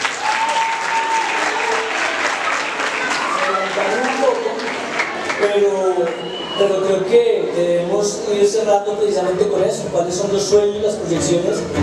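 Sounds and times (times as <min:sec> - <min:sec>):
applause: 0:00.0 - 0:06.3
speech: 0:05.6 - 0:11.8.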